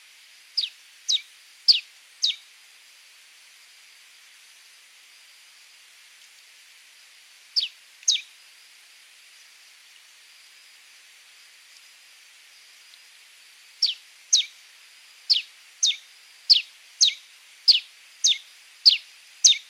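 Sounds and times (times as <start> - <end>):
red-crested soldier bird singing: 0.6 - 2.4, 7.6 - 8.3, 13.8 - 14.5, 15.3 - 19.6.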